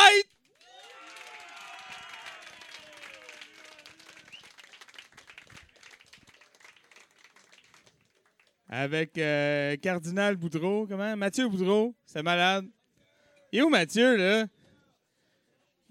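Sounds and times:
audience applause: 0:00.5 - 0:08.5
speech: 0:08.8 - 0:12.8, 0:13.5 - 0:14.6.

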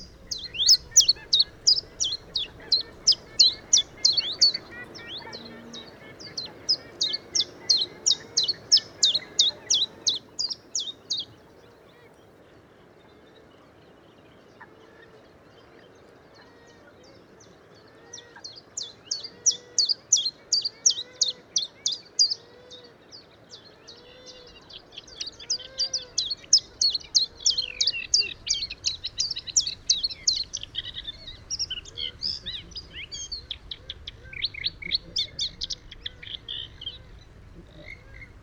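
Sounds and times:
bird buzzy trills at the Etangs de Scamandre: 0:00.0 - 0:11.4, 0:24.0 - 0:38.4
softer repeated bird calls: 0:00.0 - 0:12.2, 0:16.0 - 0:38.4.

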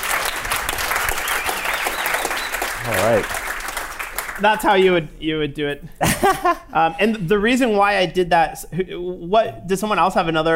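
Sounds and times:
class applauding during a programming lesson: 0:00.0 - 0:04.5
speech: 0:02.9 - 0:03.4, 0:04.4 - 0:10.5.

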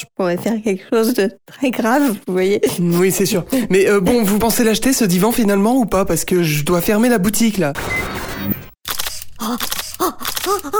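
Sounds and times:
speech: 0:00.0 - 0:08.6, 0:09.4 - 0:09.8, 0:10.5 - 0:10.7
camera shutter clicking as photos are taken: 0:07.8 - 0:10.7.

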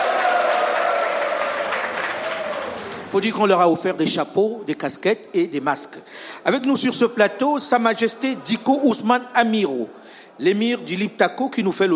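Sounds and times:
scattered audience cheers in a university amphitheatre in Ouagadougou: 0:00.0 - 0:03.0
lively audience clapping in an amphitheatre at Joseph Ki-Zerbo University in Ouagadougou: 0:00.0 - 0:03.1
speech: 0:03.1 - 0:11.9.

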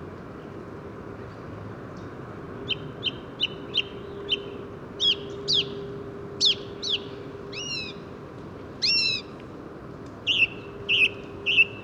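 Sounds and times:
song thrush singing: 0:02.0 - 0:08.1, 0:08.8 - 0:09.4, 0:10.2 - 0:11.8.

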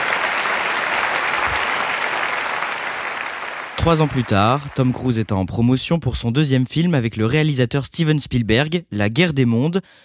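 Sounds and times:
audience applauding enthusiastically: 0:00.0 - 0:05.3
speech: 0:03.8 - 0:10.0.

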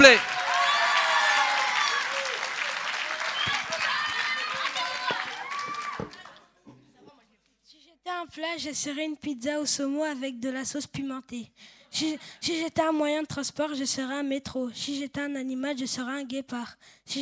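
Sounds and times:
audience applauding loudly: 0:00.0 - 0:06.4
speech: 0:08.4 - 0:17.2.

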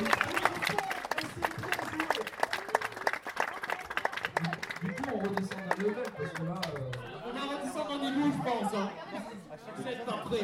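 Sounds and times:
audience applause: 0:00.0 - 0:07.2
speech: 0:05.3 - 0:09.0, 0:09.6 - 0:10.4.

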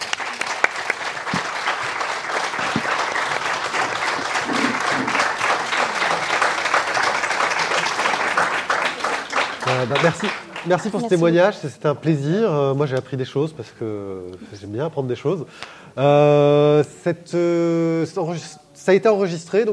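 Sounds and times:
audience applause: 0:00.0 - 0:11.3
speech: 0:09.7 - 0:19.7.

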